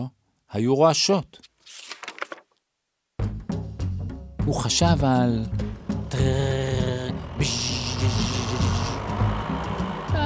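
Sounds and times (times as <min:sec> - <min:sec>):
speech: 0:00.0 - 0:01.5, 0:04.5 - 0:06.5, 0:07.4 - 0:08.4
tractor engine: 0:05.3 - 0:10.2.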